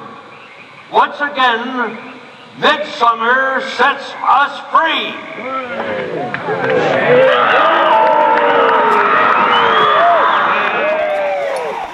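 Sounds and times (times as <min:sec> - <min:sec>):
speech: 0:00.9 - 0:07.7
crowd cheering and applauding: 0:06.6 - 0:11.9.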